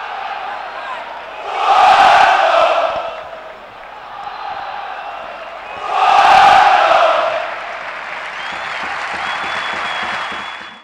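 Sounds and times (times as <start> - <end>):
crowd chanting in Porto: 0.0 - 8.6.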